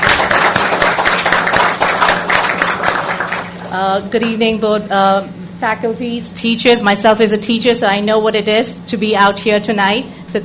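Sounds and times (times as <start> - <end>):
audience clapping: 0.0 - 3.8
speech: 3.8 - 10.4.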